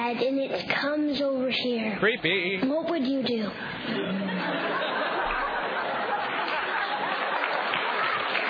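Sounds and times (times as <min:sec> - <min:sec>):
speech: 0:00.1 - 0:05.1
laughter: 0:03.9 - 0:08.4
clapping: 0:06.3 - 0:08.4.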